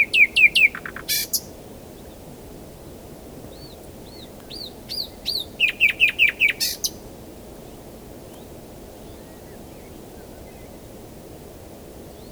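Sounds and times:
common nightingale singing: 0.0s - 1.5s, 4.1s - 7.0s.

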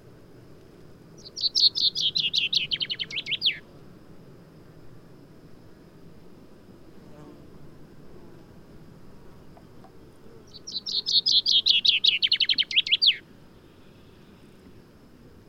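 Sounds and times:
common chaffinch singing: 1.2s - 3.6s, 10.4s - 14.4s.

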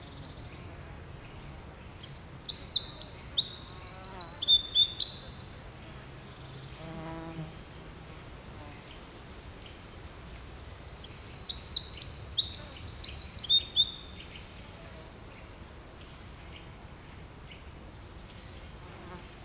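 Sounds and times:
Eurasian wren Troglodytes troglodytes singing: 1.4s - 9.1s, 10.5s - 14.4s.

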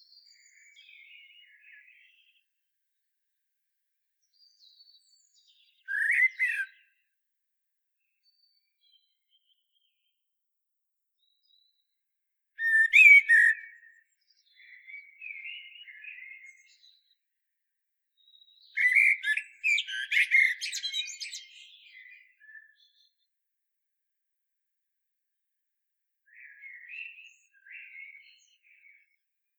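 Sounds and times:
common blackbird singing: 0.0s - 2.4s, 4.3s - 6.9s, 12.6s - 17.2s, 18.2s - 23.2s, 26.3s - 29.2s.

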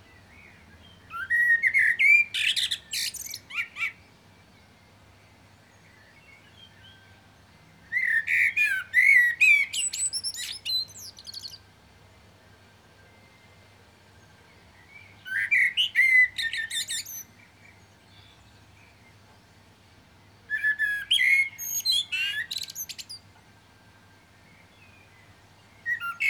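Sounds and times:
common blackbird singing, Turdus merula: 0.0s - 4.8s, 5.6s - 11.7s, 14.2s - 19.2s, 20.5s - 23.3s, 24.4s - 26.2s.

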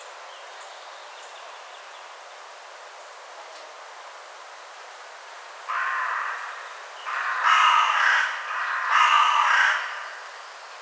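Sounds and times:
carrion crow cawing: 5.7s - 10.4s.

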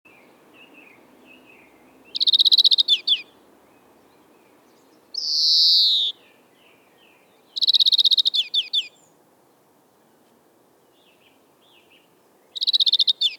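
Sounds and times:
European greenfinch Chloris chloris song with twittering trills and wheezing note: 0.1s - 9.2s, 10.8s - 13.3s.

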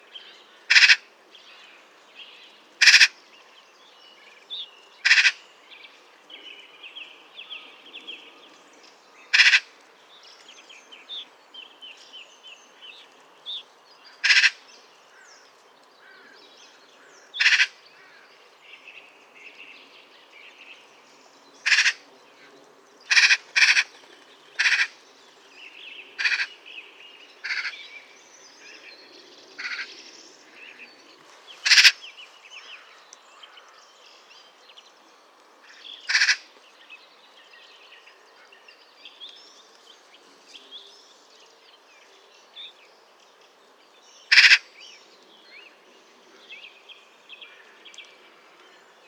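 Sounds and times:
Pica pica: 0.7s - 1.1s, 2.8s - 3.2s, 5.0s - 5.4s, 9.3s - 9.7s, 14.2s - 14.6s, 17.4s - 17.8s, 21.6s - 22.0s, 23.1s - 25.0s, 26.2s - 26.5s, 27.4s - 27.8s, 31.6s - 32.0s, 36.1s - 36.5s, 44.3s - 44.7s.

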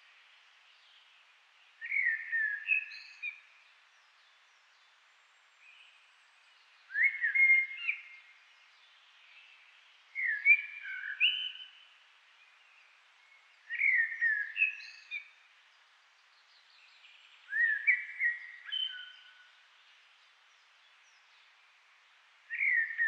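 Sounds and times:
common blackbird Turdus merula singing: 1.8s - 3.4s, 6.9s - 8.2s, 10.2s - 11.8s, 13.2s - 15.3s, 16.6s - 19.6s, 22.5s - 23.0s.

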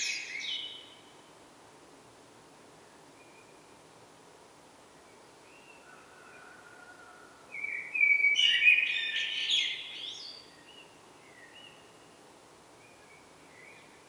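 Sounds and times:
common blackbird Turdus merula singing fluty phrases and twitters: 7.6s - 10.8s.

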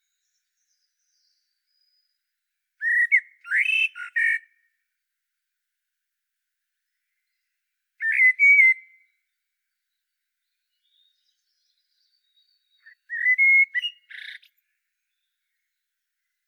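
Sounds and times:
Common blackbird Turdus merula fluted and warbled song: 0.0s - 4.9s, 6.8s - 16.4s.

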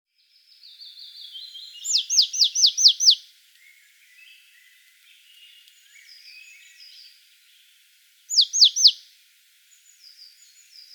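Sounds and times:
Poecile palustris marsh tit giving high downslurred notes: 1.8s - 3.2s, 8.3s - 9.0s.

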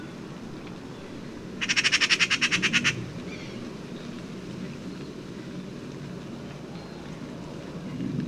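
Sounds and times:
Eurasian magpie Pica pica giving harsh machine-gun chatter: 1.6s - 3.0s.

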